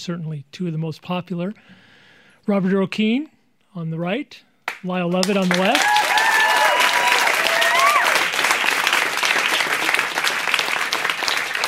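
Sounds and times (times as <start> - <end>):
speech: 0.0 - 5.9
live studio audience in Studio 1A applauding: 4.7 - 11.6.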